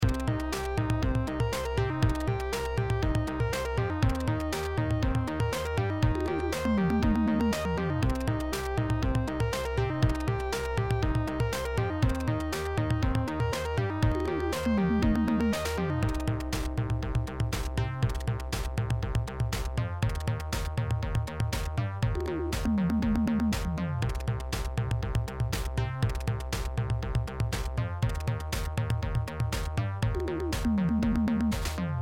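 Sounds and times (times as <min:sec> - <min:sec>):
bass lead sound over a beat: 0:00.0 - 0:32.0.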